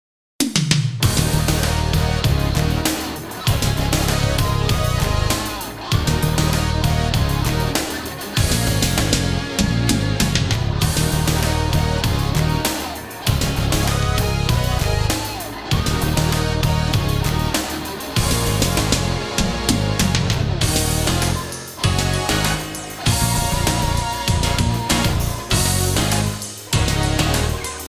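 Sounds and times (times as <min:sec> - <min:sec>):
rock music: 0:01.0 - 0:27.8.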